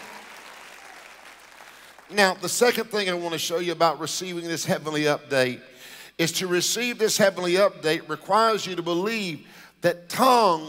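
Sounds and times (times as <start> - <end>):
audience clapping hands: 0.0 - 2.4
speech: 2.1 - 10.6.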